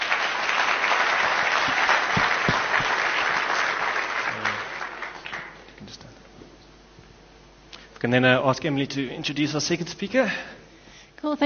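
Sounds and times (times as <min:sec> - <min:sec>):
audience applause: 0:00.0 - 0:05.6
speech: 0:08.0 - 0:10.6, 0:11.2 - 0:11.4.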